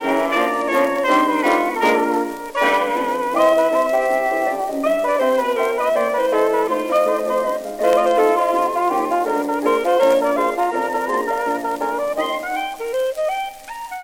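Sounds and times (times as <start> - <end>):
jukebox music: 0.0 - 14.0.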